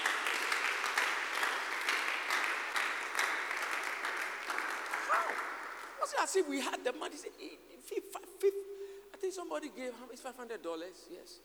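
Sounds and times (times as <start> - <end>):
audience clapping hands: 0.0 - 6.3
speech: 6.2 - 11.4.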